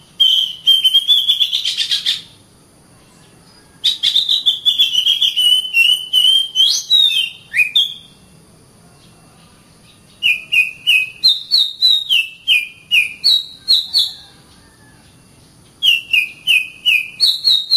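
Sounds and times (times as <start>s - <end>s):
Oriental magpie-robin song: 0.0s - 2.4s, 3.1s - 8.2s, 9.8s - 14.4s, 15.7s - 17.7s.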